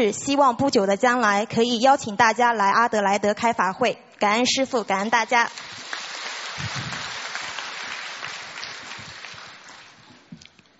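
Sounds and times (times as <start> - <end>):
speech: 0.0 - 5.8
audience applause: 5.5 - 10.4.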